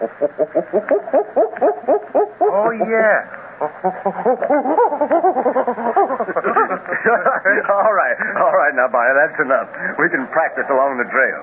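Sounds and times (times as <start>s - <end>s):
speech: 0.0s - 1.7s, 2.8s - 5.0s, 7.5s - 11.4s
human voice imitating gorilla barking: 0.0s - 6.8s
laughter: 3.8s - 8.5s.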